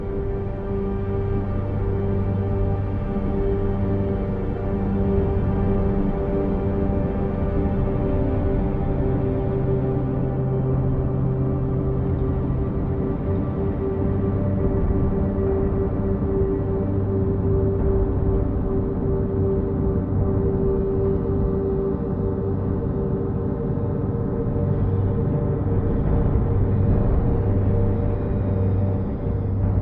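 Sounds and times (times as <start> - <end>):
ambient music: 0.0 - 29.8.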